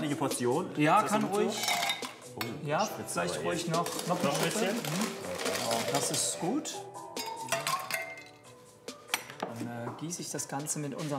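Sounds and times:
speech: 0.1s - 7.0s, 10.0s - 11.1s
ice cubes clinking into a glass: 1.5s - 2.2s, 3.6s - 6.2s, 7.2s - 8.4s.

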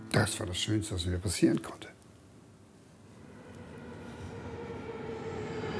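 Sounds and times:
speech: 0.2s - 1.9s
ICE high-speed train rumble and rail noise: 3.0s - 5.7s.

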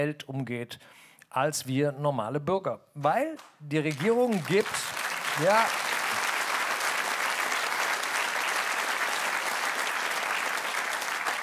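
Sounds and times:
speech: 0.0s - 5.9s
audience clapping: 3.4s - 11.4s.

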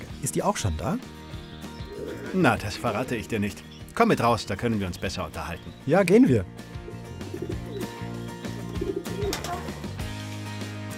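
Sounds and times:
speech: 0.3s - 1.2s, 2.3s - 6.7s
pigeons cooing: 1.5s - 3.9s, 6.7s - 10.0s.

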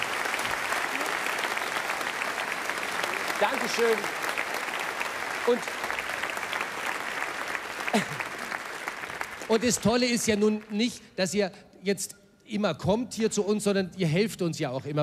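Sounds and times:
audience applause for former bridal couples: 0.0s - 10.7s
speech: 3.4s - 4.3s, 5.5s - 5.8s, 7.9s - 8.2s, 9.5s - 15.0s.

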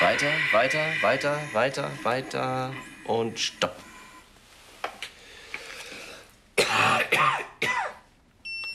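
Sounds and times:
speech: 0.2s - 3.9s
person coughing: 6.6s - 8.1s.

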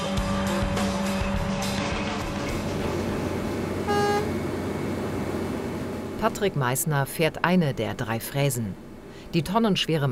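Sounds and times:
heavy trucks rumbling while hauling away old asphalt: 0.1s - 10.1s
short horn tone: 3.8s - 4.4s
speech: 6.2s - 10.1s.

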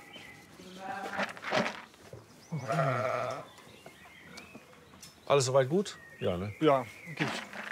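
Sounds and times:
speech: 2.5s - 3.1s, 5.3s - 7.4s
sheep bleating: 2.6s - 3.5s.

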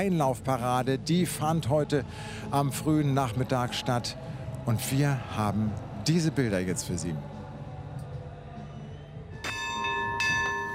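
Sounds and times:
speech: 0.0s - 7.3s
bell strikes: 9.4s - 10.7s.

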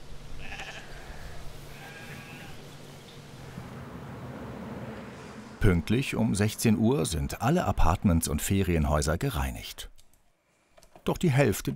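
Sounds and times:
sheep bleating: 0.4s - 2.6s
speech: 5.6s - 9.9s, 11.1s - 11.7s.

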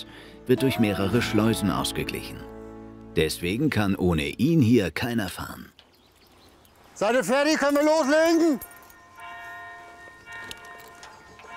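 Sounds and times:
speech: 0.0s - 2.5s, 3.2s - 5.8s, 7.0s - 8.7s
church bell striking the hour: 8.3s - 11.5s.

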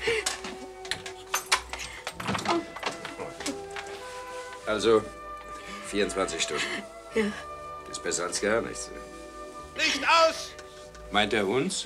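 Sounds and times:
door being closed: 1.6s - 3.9s
speech: 4.7s - 5.2s, 5.9s - 9.2s, 9.8s - 11.8s.

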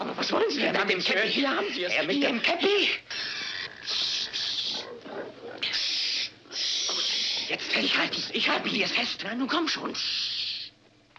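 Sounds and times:
speech: 0.2s - 4.1s, 7.5s - 10.3s
pig grunting and squealing: 3.0s - 8.0s.

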